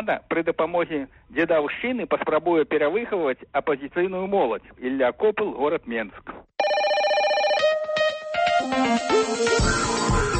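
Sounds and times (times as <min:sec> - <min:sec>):
speech: 0:00.0 - 0:06.7, 0:08.7 - 0:10.3
telephone electronic ringtone for incoming call: 0:06.6 - 0:08.9.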